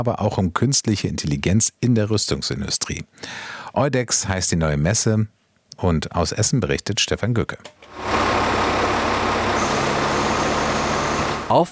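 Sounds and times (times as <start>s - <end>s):
speech: 0.0s - 8.1s, 11.5s - 11.7s
military truck's heavy engine rumbling as it drives in: 7.9s - 11.7s.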